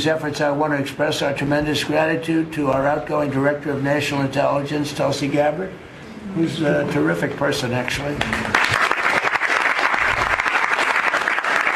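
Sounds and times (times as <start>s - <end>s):
speech: 0.0s - 8.5s
applause after a cabinet meeting: 8.2s - 11.7s.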